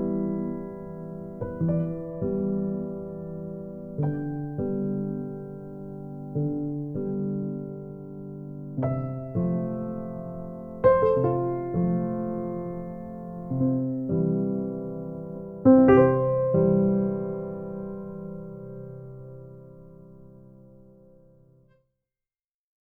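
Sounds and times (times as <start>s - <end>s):
piano piece: 0.0s - 21.7s.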